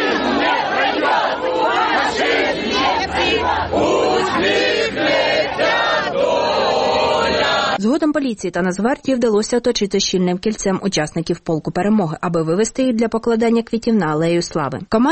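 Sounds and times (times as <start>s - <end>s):
crowd singing and chanting slogans: 0.0s - 7.8s
speech: 7.8s - 15.1s.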